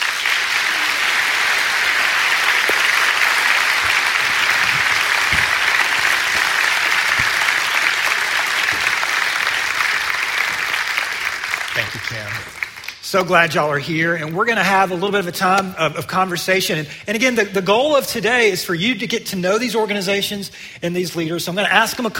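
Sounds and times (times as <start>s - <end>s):
applause from a large crowd welcoming guests to stage: 0.0s - 13.0s
speech: 13.1s - 22.1s.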